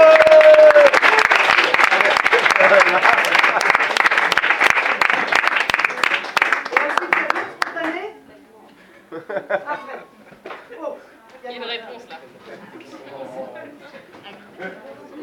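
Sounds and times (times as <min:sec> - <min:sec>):
audience clapping: 0:00.0 - 0:08.1
laughter: 0:01.2 - 0:04.0, 0:08.9 - 0:10.4.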